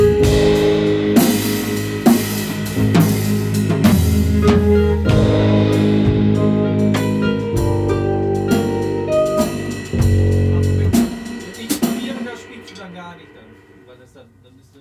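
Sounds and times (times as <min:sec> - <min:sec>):
solo bass: 0:00.0 - 0:11.2
cello backing: 0:02.4 - 0:11.4.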